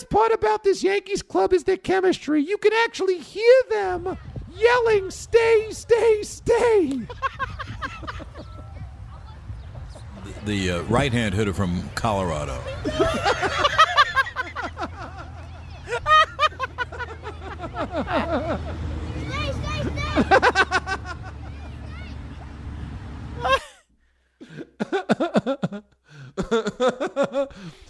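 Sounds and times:
speech: 0:00.0 - 0:07.7, 0:10.4 - 0:13.8, 0:17.8 - 0:18.9, 0:19.5 - 0:21.0
piped-in Levittown Little League crowd noise: 0:05.6 - 0:23.5
laughter: 0:06.8 - 0:08.9, 0:09.9 - 0:11.1, 0:12.5 - 0:22.6, 0:23.4 - 0:23.8, 0:24.4 - 0:27.7.

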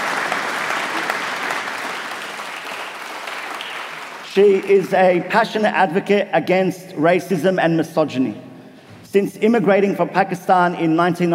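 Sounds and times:
audience applauding: 0:00.0 - 0:04.9
speech: 0:04.4 - 0:08.5, 0:09.1 - 0:11.3.

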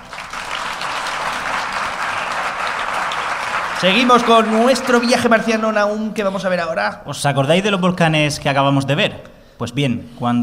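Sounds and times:
audience applause: 0:00.0 - 0:05.4
speech: 0:03.8 - 0:10.4.

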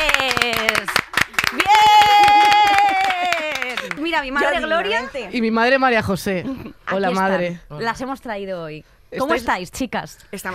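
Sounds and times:
audience applause: 0:00.0 - 0:04.1
speech: 0:04.8 - 0:10.5.

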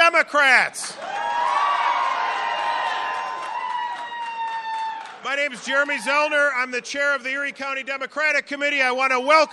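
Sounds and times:
speech: 0:00.2 - 0:01.5, 0:05.2 - 0:09.5
scattered clapping: 0:00.8 - 0:06.2
large crowd cheering: 0:00.8 - 0:06.5.

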